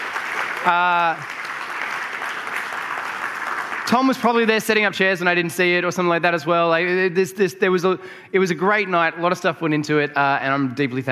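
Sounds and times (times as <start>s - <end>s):
crowd applauding: 0.0s - 5.1s
speech: 0.7s - 1.4s, 3.9s - 11.1s.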